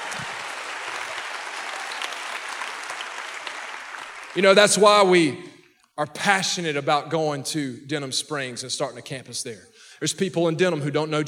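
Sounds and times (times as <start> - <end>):
crowd clapping: 0.0 - 5.2
speech: 4.4 - 11.2.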